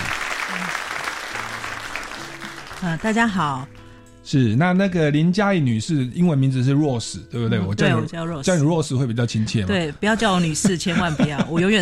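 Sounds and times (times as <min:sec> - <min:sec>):
audience applause: 0:00.0 - 0:03.8
speech: 0:02.8 - 0:11.8
laughter: 0:10.1 - 0:11.8.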